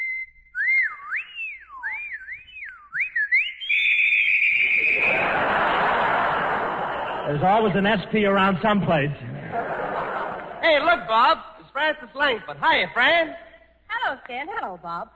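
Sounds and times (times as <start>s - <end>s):
person whistling at a woman: 0.0s - 5.4s
laughter: 4.6s - 11.1s
speech: 7.3s - 9.4s, 10.6s - 13.4s, 14.1s - 15.1s.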